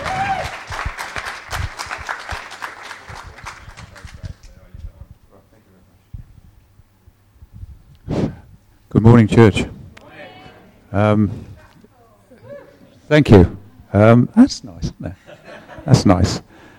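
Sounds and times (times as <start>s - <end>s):
audience clapping: 0.0s - 4.7s
speech: 9.1s - 9.7s, 10.9s - 11.5s, 13.1s - 15.2s, 15.9s - 16.5s
laughter: 15.0s - 16.3s.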